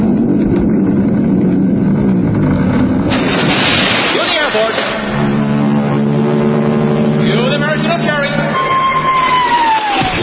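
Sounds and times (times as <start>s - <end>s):
aircraft flyover: 0.0s - 3.2s, 4.8s - 10.1s
whipped cream avalanche: 0.0s - 5.6s
cheering crowd: 8.4s - 10.2s
descending whistle: 8.4s - 10.2s.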